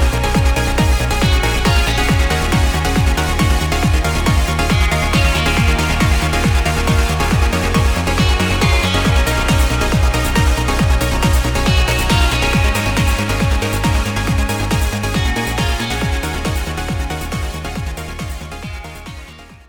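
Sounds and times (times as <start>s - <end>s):
trance music: 0.0s - 19.6s.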